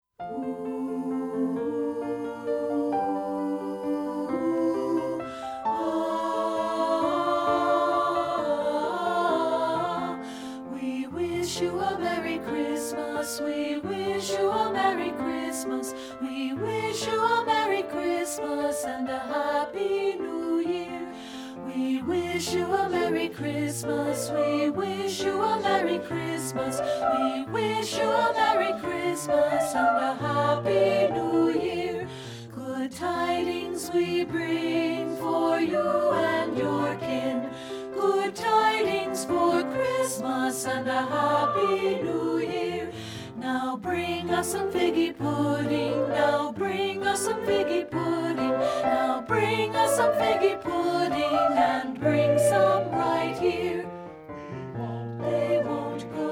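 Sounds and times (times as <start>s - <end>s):
Christmas song: 0.0s - 56.3s.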